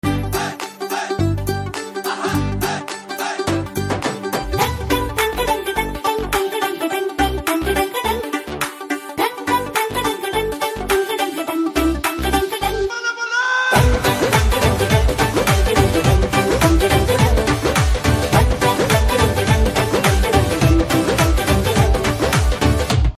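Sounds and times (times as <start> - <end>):
Telugu starting music ringtone: 0.0 - 23.0.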